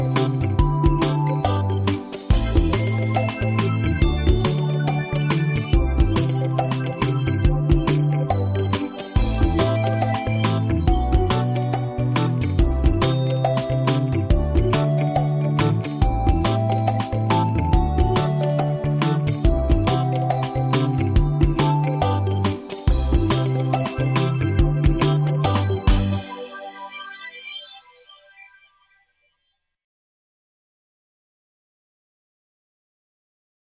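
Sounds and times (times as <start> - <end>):
karaoke story song: 0.0 - 26.8.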